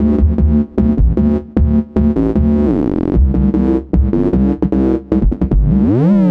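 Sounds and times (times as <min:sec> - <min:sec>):
synth bass: 0:00.0 - 0:06.2.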